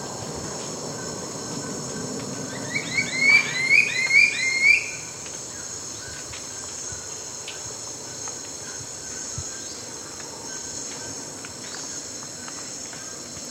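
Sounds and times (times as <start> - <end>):
red-billed scythebill singing in the eastern lowlands of South America: 2.4 - 5.1.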